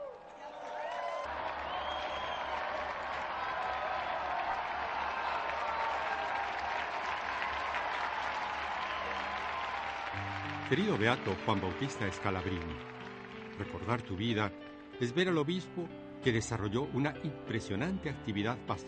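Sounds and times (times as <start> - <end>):
faint cheer: 0.0 - 13.7
large audience applause: 0.0 - 14.5
speech: 10.7 - 12.9, 13.6 - 18.8.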